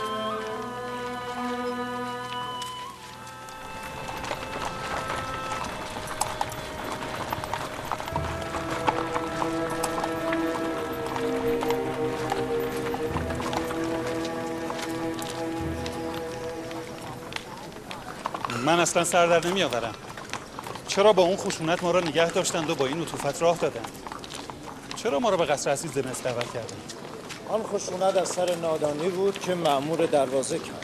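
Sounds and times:
music: 0:00.0 - 0:17.9
pack animals' hooves clip-clopping as they are led to the stable: 0:00.0 - 0:30.8
speech: 0:18.7 - 0:20.1, 0:21.0 - 0:24.0, 0:25.0 - 0:30.8.

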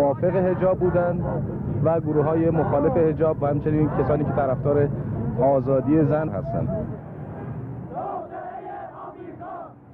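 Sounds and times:
speech: 0:00.2 - 0:07.1
protest crowd chanting a slogan: 0:02.1 - 0:04.6, 0:07.3 - 0:09.9.

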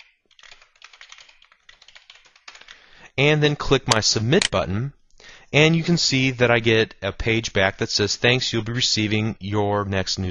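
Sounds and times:
computer keyboard typing an email address: 0:00.0 - 0:02.8
speech: 0:03.2 - 0:10.3.

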